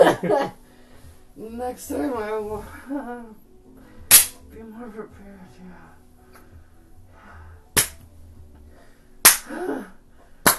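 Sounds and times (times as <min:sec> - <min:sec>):
speech: 0:01.4 - 0:03.4, 0:04.6 - 0:06.0
slaps: 0:04.1 - 0:04.4, 0:07.8 - 0:08.1, 0:09.2 - 0:09.6.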